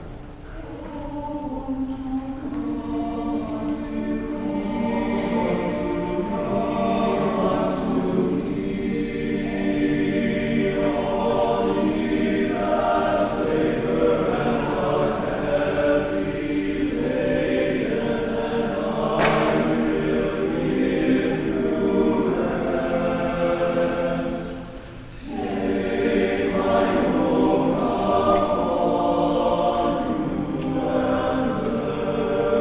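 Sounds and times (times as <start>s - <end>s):
choir singing: 0.0s - 32.5s.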